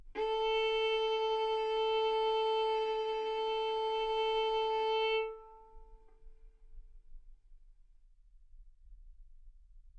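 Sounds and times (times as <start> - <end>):
violin bowed arco notes: 0.0 - 6.2.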